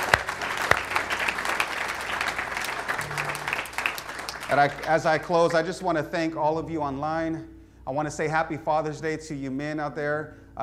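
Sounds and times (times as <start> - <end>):
audience clapping: 0.0 - 5.8
speech: 4.5 - 10.6.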